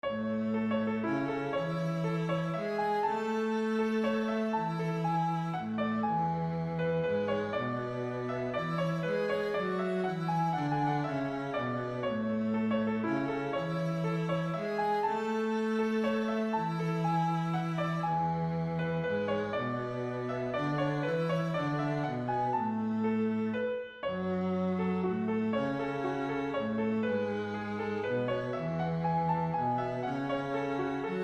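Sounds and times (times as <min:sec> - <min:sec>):
waltz clog melody with viola and cello: 0:00.0 - 0:31.2.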